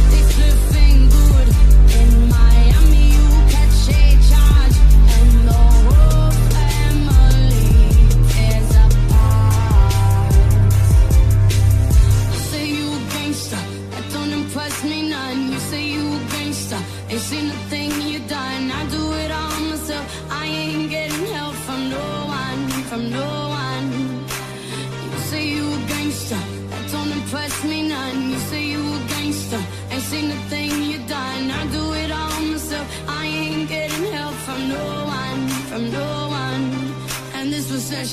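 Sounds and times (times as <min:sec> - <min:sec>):
deep bass: 0:00.0 - 0:13.3.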